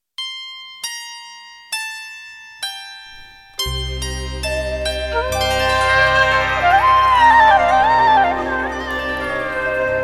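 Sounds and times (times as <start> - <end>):
santoor: 0.2 - 10.0
flute: 4.5 - 10.0.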